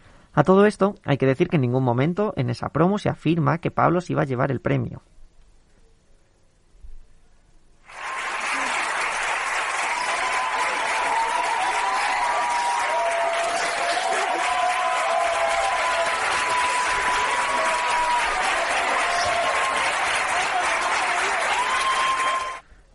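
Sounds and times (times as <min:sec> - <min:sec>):
speech: 0:00.4 - 0:05.1
studio audience applause: 0:07.9 - 0:22.6.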